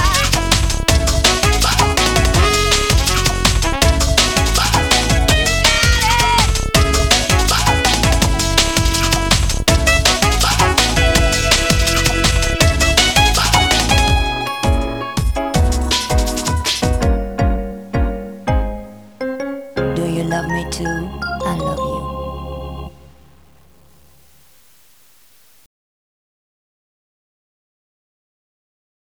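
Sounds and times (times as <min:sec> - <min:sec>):
bossa nova music: 0:00.0 - 0:23.3.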